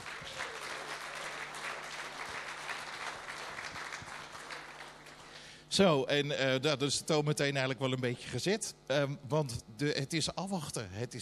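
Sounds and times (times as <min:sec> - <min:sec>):
applause: 0:00.0 - 0:05.4
speech: 0:05.8 - 0:11.2.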